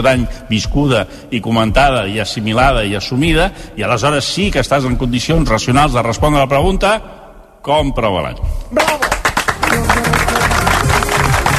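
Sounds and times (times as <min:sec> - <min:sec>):
speech: 0:00.0 - 0:09.2
enthusiastic applause: 0:08.8 - 0:11.5.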